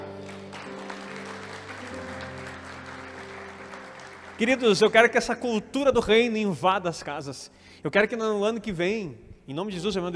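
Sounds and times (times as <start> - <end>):
audience applause: 0.0 - 5.2
speech: 4.4 - 10.1.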